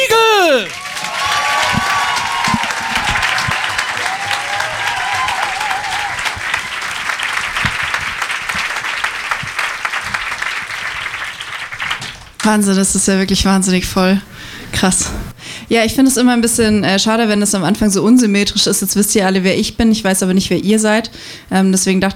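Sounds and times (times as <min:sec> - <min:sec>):
whoops and cheers: 0:00.0 - 0:07.0
thunderous applause from a large audience: 0:00.0 - 0:12.4
speech: 0:12.5 - 0:22.1.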